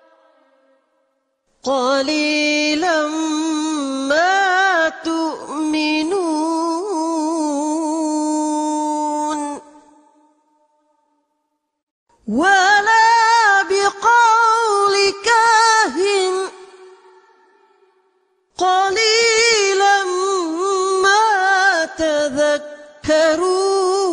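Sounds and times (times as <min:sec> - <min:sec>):
Quranic recitation: 0:00.0 - 0:11.3, 0:12.1 - 0:24.1.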